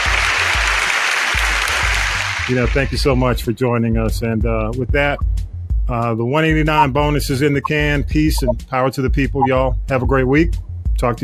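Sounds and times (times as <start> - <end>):
applause: 0.0 - 3.1
speech: 2.5 - 11.2.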